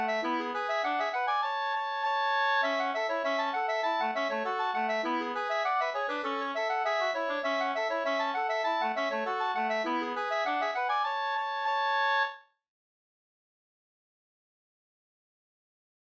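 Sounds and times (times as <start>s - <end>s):
polka music: 0.0s - 12.4s.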